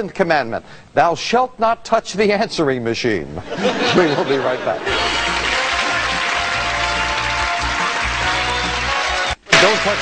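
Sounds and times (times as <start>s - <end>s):
speech: 0.0s - 5.3s, 9.8s - 10.0s
laughter: 3.4s - 6.6s
crowd applause: 4.7s - 10.0s.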